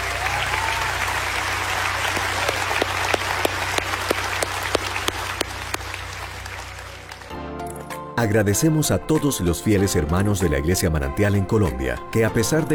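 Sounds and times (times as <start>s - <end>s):
audience applause: 0.0s - 7.4s
speech: 8.2s - 12.7s.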